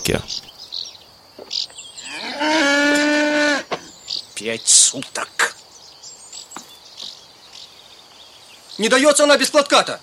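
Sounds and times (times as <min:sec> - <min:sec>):
speech: 0:00.0 - 0:00.5, 0:04.4 - 0:05.4, 0:08.8 - 0:10.0
cow mooing: 0:02.0 - 0:03.8.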